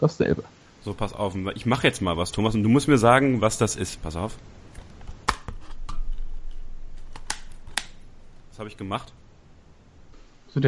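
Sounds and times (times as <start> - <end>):
speech: 0.0 - 4.6, 8.6 - 9.2
plastic DVD case being opened and closed: 4.7 - 8.0.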